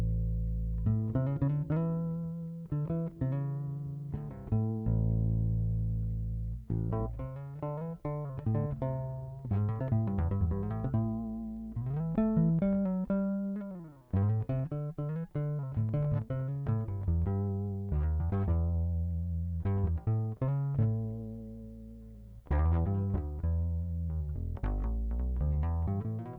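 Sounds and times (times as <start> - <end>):
bass guitar through a pickup: 0.0 - 26.3.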